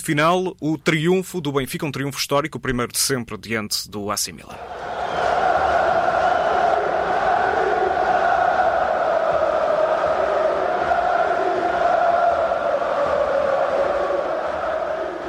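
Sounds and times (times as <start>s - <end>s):
speech: 0.0s - 5.3s
fans celebrating in stadium stands: 4.6s - 15.2s.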